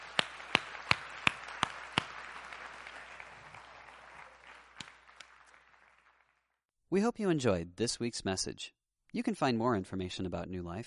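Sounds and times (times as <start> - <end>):
sharp evenly spaced claps: 0.0 - 5.6
audience applause: 0.0 - 6.6
speech: 6.9 - 10.8.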